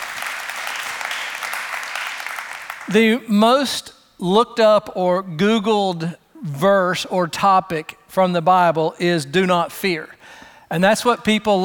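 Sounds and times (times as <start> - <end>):
audience clapping: 0.0 - 3.0
speech: 2.9 - 11.6.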